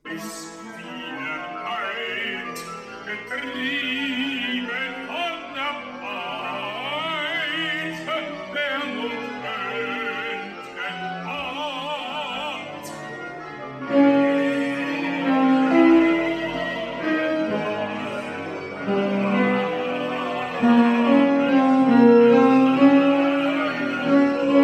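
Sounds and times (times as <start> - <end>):
tenors singing: 0.0 - 24.6.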